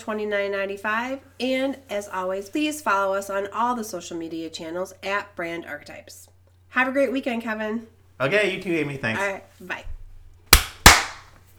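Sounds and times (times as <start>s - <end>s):
speech: 0.0s - 10.0s
hand claps: 10.5s - 11.3s.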